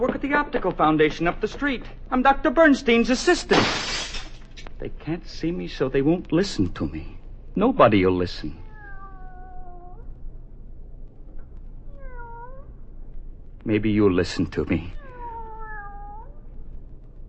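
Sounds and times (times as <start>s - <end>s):
speech: 0.0s - 4.2s, 4.8s - 8.6s, 13.6s - 15.0s
cat meowing: 8.4s - 10.1s, 11.9s - 12.7s, 14.8s - 16.5s.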